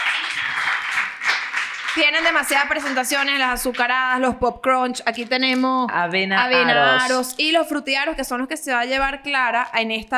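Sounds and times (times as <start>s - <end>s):
applause: 0.0s - 3.9s
speech: 2.0s - 10.1s.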